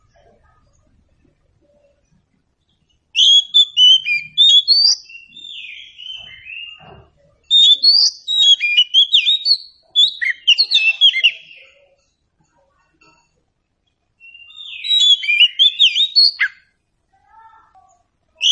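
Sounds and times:
Oriental Magpie-Robin song: 0:02.8 - 0:12.0, 0:14.2 - 0:16.7.

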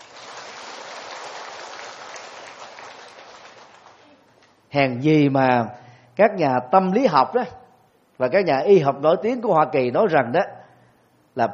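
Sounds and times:
audience clapping in a lecture hall: 0:00.0 - 0:04.6
speech: 0:04.7 - 0:07.6, 0:08.2 - 0:10.6, 0:11.4 - 0:11.5.

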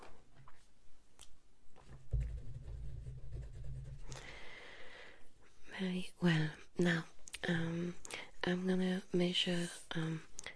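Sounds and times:
pen writing on paper: 0:02.2 - 0:04.2
speech: 0:05.8 - 0:10.3.

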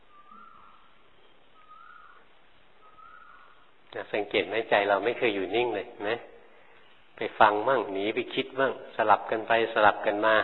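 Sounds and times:
birds calling with whistled notes: 0:00.0 - 0:03.7
soft steady noise: 0:00.0 - 0:10.4
speech: 0:04.1 - 0:06.3, 0:07.2 - 0:10.4.

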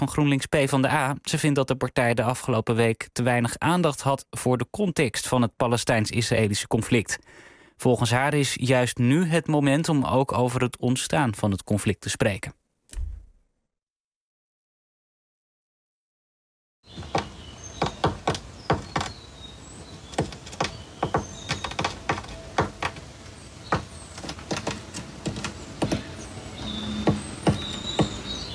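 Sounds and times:
speech: 0:00.0 - 0:12.6
great tit knocking on a wooden shed: 0:17.0 - 0:19.2, 0:20.1 - 0:23.1, 0:23.7 - 0:26.1, 0:27.0 - 0:28.3
faint high chirps: 0:26.1 - 0:28.5.

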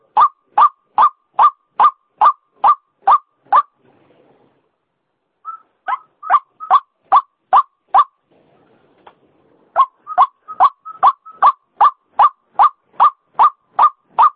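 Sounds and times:
female white-breasted waterhen croaking call used as a lure sound: 0:00.0 - 0:03.7, 0:05.4 - 0:08.1, 0:09.8 - 0:14.3.

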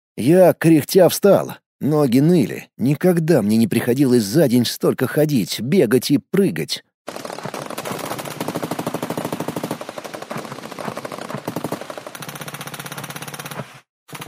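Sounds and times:
speech: 0:00.2 - 0:07.3
automatic gunfire in a forest battle: 0:07.1 - 0:14.2.

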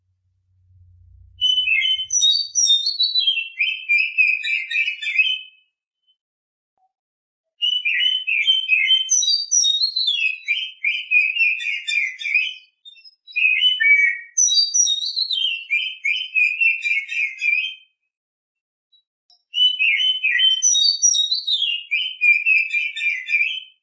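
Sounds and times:
Oriental magpie-robin song: 0:01.4 - 0:06.2, 0:07.6 - 0:17.9, 0:19.3 - 0:23.8.

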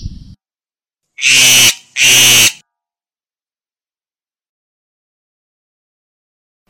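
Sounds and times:
black-winged myna giving harsh squawky and grating notes: 0:01.2 - 0:02.6.

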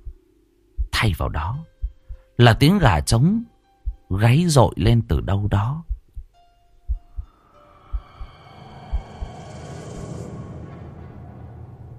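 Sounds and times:
heartbeat sound effect: 0:00.0 - 0:02.4, 0:03.8 - 0:04.2, 0:05.8 - 0:07.3, 0:07.9 - 0:09.4
speech: 0:01.0 - 0:01.7, 0:02.4 - 0:03.5, 0:04.1 - 0:05.9.

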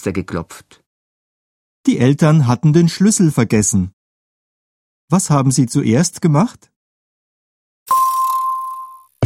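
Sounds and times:
speech: 0:00.0 - 0:00.8, 0:01.8 - 0:04.0, 0:05.1 - 0:06.7
doorbell short steady electronic tone: 0:07.9 - 0:09.1.

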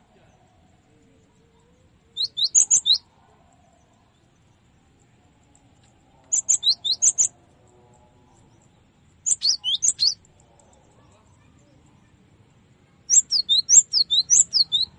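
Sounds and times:
cinereous tit song for training cage birds: 0:06.4 - 0:07.3, 0:09.3 - 0:10.2, 0:13.1 - 0:14.9.

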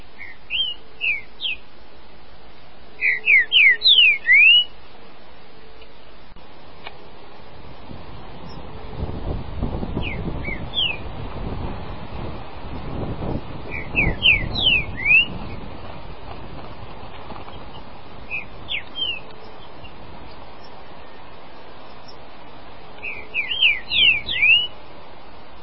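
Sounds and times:
green-winged saltator singing: 0:00.0 - 0:01.8, 0:02.8 - 0:04.8, 0:09.8 - 0:11.2, 0:12.7 - 0:15.8, 0:17.4 - 0:25.6.

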